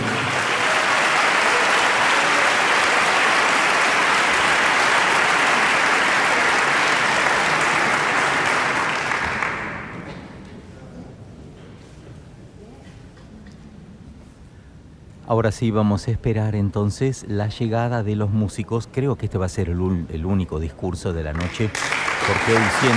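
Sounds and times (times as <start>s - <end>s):
large audience applause: 0.0s - 10.1s, 21.4s - 22.9s
speech: 15.4s - 22.9s.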